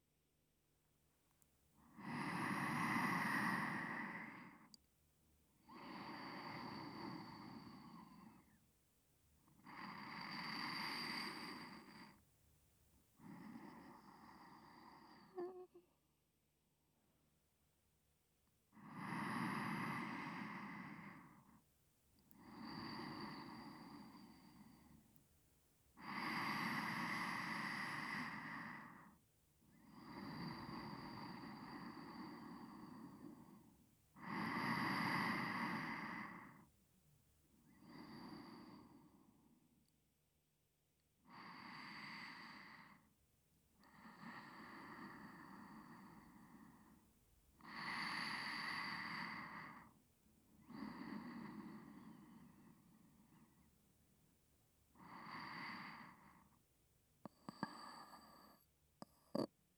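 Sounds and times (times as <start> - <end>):
person breathing in sleep on left side: 1.9 - 4.7, 5.7 - 8.6, 9.6 - 12.2, 13.2 - 15.7, 18.8 - 21.6, 22.4 - 25.0, 26.0 - 29.2, 29.8 - 36.7, 41.3 - 43.2, 43.9 - 50.0, 50.6 - 53.6, 55.0 - 56.6, 57.4 - 58.6.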